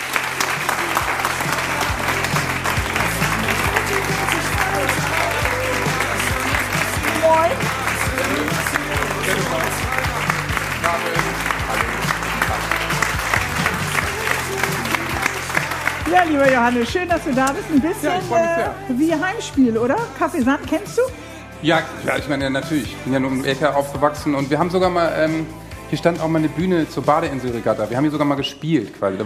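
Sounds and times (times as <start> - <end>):
audience applause: 0.0 - 18.5
speech: 16.6 - 29.2.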